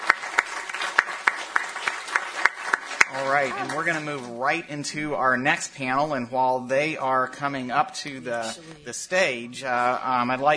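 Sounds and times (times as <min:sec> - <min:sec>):
audience applause: 0:00.0 - 0:04.6
speech: 0:03.1 - 0:10.5.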